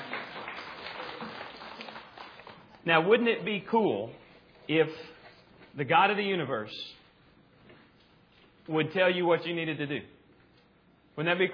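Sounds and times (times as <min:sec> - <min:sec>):
audience clapping: 0:00.0 - 0:02.9
speech: 0:02.8 - 0:05.2, 0:05.8 - 0:07.0, 0:08.7 - 0:10.2, 0:11.2 - 0:11.5.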